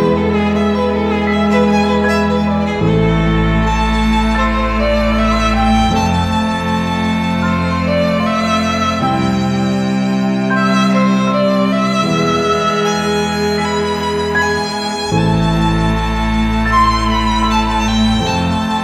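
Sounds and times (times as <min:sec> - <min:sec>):
longing violin playing: 0:00.0 - 0:18.8.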